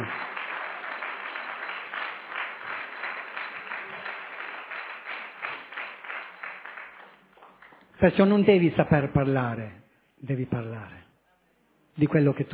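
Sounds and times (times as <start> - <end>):
audience applause: 0.0 - 7.9
speech: 8.0 - 11.0, 12.0 - 12.5.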